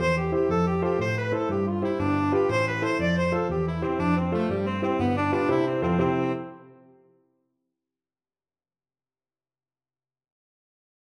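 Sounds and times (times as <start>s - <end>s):
tenor saxophone: 0.0s - 6.9s.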